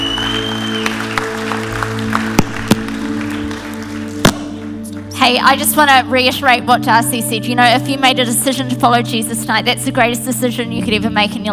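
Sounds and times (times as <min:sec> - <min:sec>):
crowd applauding: 0:00.0 - 0:05.2
speech: 0:05.2 - 0:11.5.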